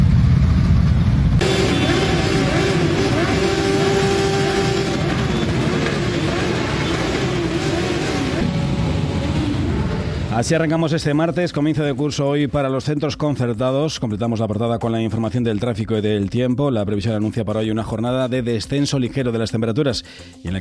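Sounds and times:
motorcycle engines revving in tribute: 0.0s - 10.8s
rumble: 0.0s - 11.6s
speech: 10.4s - 20.5s.

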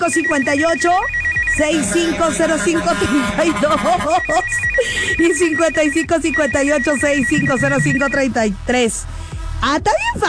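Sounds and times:
speech: 0.0s - 10.2s
telephone ringing tone after a number is dialed: 0.3s - 4.8s, 5.6s - 8.2s.

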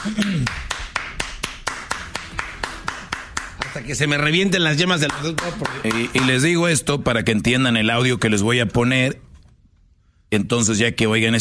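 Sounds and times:
speech: 0.0s - 0.7s, 3.8s - 9.3s, 10.3s - 11.3s
applause: 0.0s - 6.6s.

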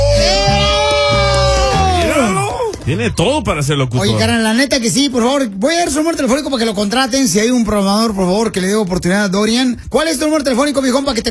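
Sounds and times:
concert crowd cheering and yelling: 0.0s - 2.8s
speech: 2.9s - 11.2s.

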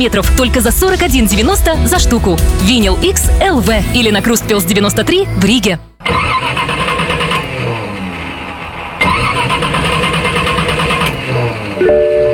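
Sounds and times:
speech: 0.0s - 6.3s
old car engine struggling to start: 6.0s - 12.3s.

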